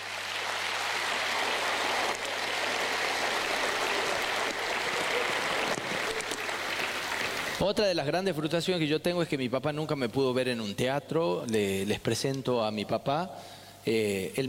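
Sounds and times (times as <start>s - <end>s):
audience applause: 0.0s - 7.6s
speech: 7.6s - 14.4s.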